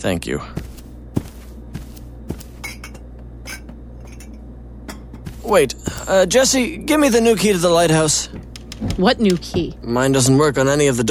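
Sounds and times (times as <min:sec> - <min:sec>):
speech: 0:00.0 - 0:00.6, 0:05.5 - 0:11.0
dishes and cutlery clinking while making a sandwich: 0:02.3 - 0:05.4.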